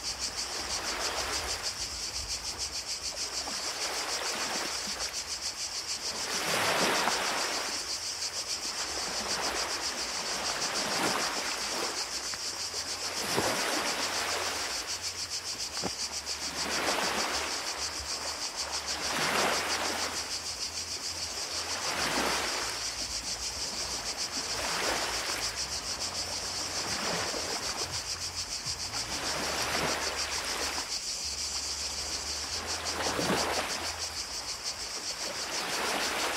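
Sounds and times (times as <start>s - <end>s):
cicadas: 0.0s - 36.3s
ocean: 0.0s - 36.3s.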